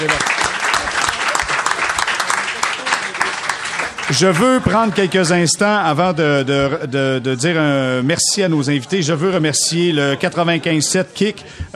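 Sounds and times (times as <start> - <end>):
live audience applause: 0.0 - 5.4
speech: 4.1 - 11.7.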